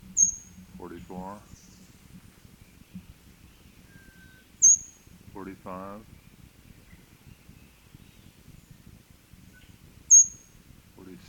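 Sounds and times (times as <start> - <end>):
high thin bird notes: 0.0 - 1.8, 3.8 - 5.1, 10.1 - 10.6
soft low noise: 0.0 - 11.2
speech: 0.8 - 1.7, 5.4 - 6.2.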